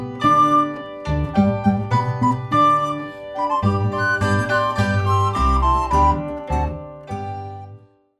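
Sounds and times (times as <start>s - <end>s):
elevator music: 0.0s - 7.8s.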